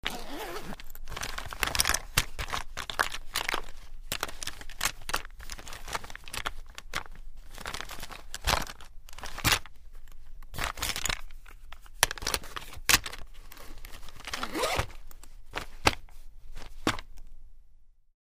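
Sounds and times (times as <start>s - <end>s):
cosmetic bag zipper unzipping: 0.0s - 0.8s, 14.3s - 14.9s
rummaging in a cosmetic bag: 0.0s - 17.2s.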